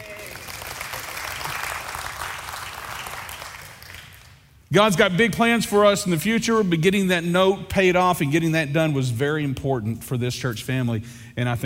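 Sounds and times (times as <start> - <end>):
audience clapping: 0.0 - 4.6
speech: 4.7 - 11.6.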